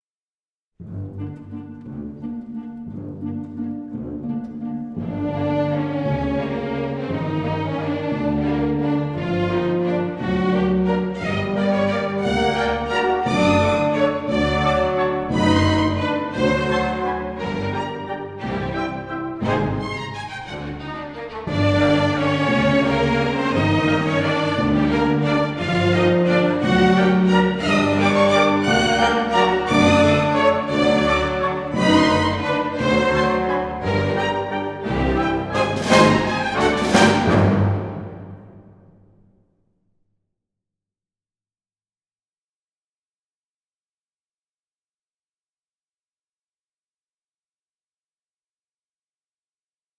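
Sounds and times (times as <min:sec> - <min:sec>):
waltz music: 0:00.9 - 0:38.6.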